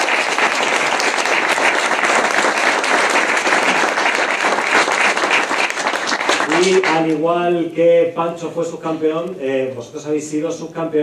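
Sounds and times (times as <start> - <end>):
audience applause: 0.0 - 7.2
speech: 6.7 - 11.0.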